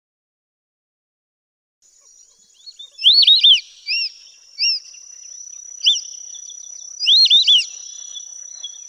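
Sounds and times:
white-faced whistling duck three-note whistled calls: 2.8s - 5.0s, 5.8s - 8.8s.

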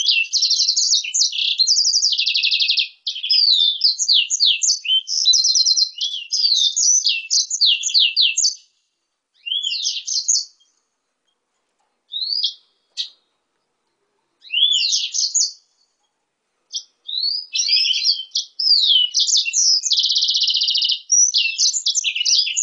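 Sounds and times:
blackthroat x canary hybrid singing rapid trills and buzzy rolls: 0.0s - 8.8s, 9.4s - 10.9s, 12.1s - 13.3s, 14.4s - 16.0s, 16.7s - 22.6s.

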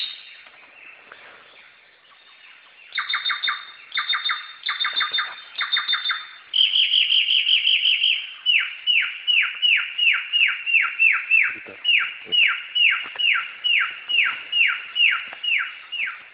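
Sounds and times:
singing: 0.0s - 16.3s.

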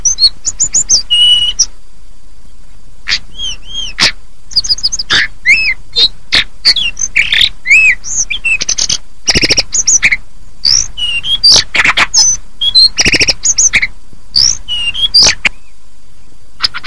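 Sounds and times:
hill blue flycatcher singing: 0.0s - 1.7s, 2.4s - 16.8s.

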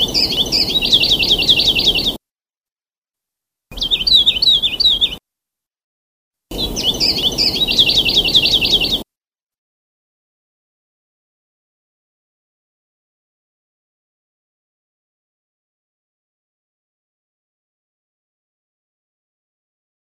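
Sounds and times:
Sulawesi leaf warbler singing: 0.0s - 2.2s, 3.7s - 5.2s, 6.5s - 9.0s.

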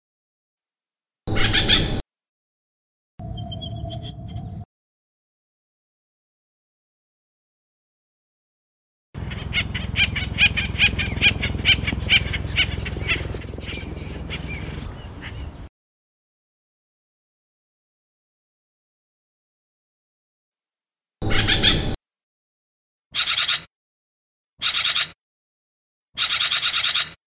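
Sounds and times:
Acorn woodpecker calling in harsh repeated notes: 1.3s - 2.0s, 3.2s - 4.6s, 9.2s - 15.7s, 21.2s - 22.0s, 23.2s - 23.7s, 24.6s - 25.2s, 26.2s - 27.2s.

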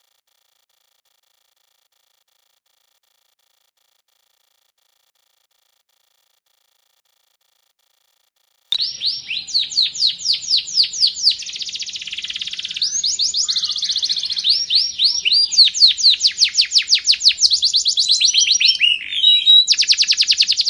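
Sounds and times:
Sekar Jagad canary singing: 8.8s - 20.6s.

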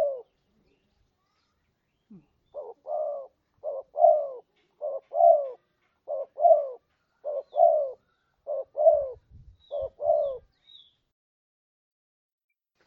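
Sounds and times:
spotted dove repeating two-part coos: 0.0s - 0.4s, 2.1s - 10.5s.

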